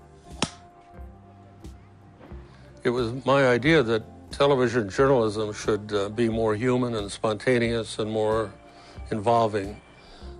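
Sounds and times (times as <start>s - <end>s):
film slate clap: 0.3s - 0.7s
speech: 2.8s - 9.8s.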